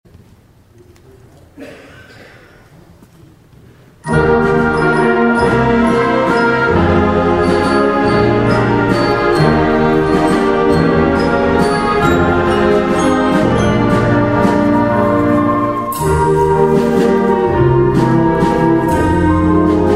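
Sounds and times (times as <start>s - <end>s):
waltz music: 4.0s - 19.9s.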